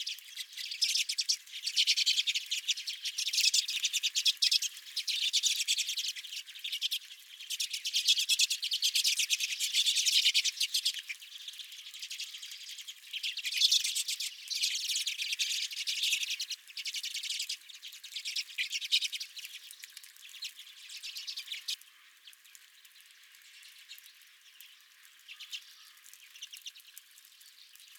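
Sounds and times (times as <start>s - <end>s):
redpoll flock chattering: 0.0s - 22.4s, 23.4s - 27.9s.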